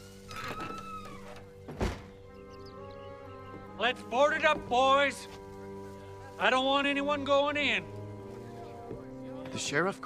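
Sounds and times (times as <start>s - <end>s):
door hinge creaking: 0.3s - 2.1s
door closing thud: 0.4s - 2.2s
speech: 3.8s - 5.4s, 6.4s - 7.9s, 9.6s - 10.0s.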